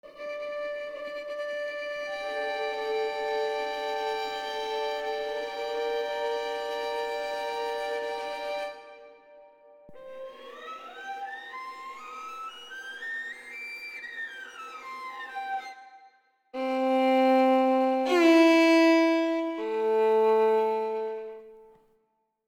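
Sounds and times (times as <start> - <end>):
emotional violin with harmonic subtones: 0.0 - 21.8.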